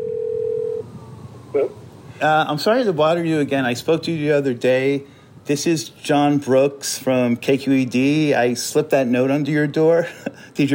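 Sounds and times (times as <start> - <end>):
telephone ringback tone on outgoing call: 0.0 - 0.9
speech: 1.5 - 10.7.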